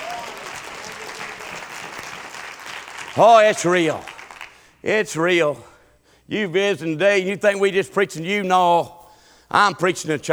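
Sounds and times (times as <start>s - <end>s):
audience clapping: 0.0s - 5.5s
speech: 3.2s - 4.1s, 4.8s - 5.7s, 6.3s - 10.3s.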